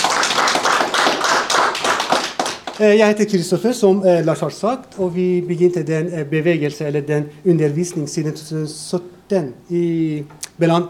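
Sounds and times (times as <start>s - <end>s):
gathering clapping in unison at a Sunday meeting: 0.0s - 3.3s
speech: 2.8s - 10.8s.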